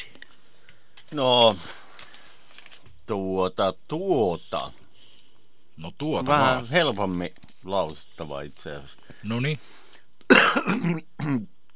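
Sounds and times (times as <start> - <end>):
speech: 1.1 - 1.8, 3.1 - 4.8, 5.8 - 11.6
cough: 10.3 - 11.5.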